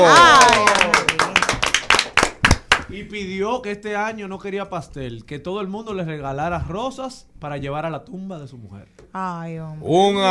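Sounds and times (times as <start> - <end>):
audience applause: 0.0 - 2.9
speech: 3.0 - 10.2.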